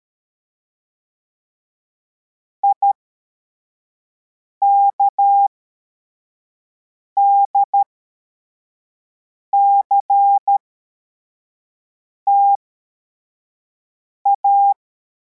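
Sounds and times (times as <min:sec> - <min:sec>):
CW morse code beeps: 0:04.6 - 0:05.5, 0:07.2 - 0:07.8, 0:09.6 - 0:10.6, 0:12.3 - 0:12.6, 0:14.3 - 0:14.8.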